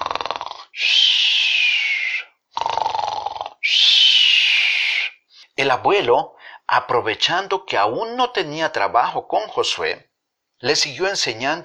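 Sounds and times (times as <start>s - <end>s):
man snoring on the beach: 0.0s - 1.8s, 2.5s - 4.8s
speech: 5.6s - 11.6s.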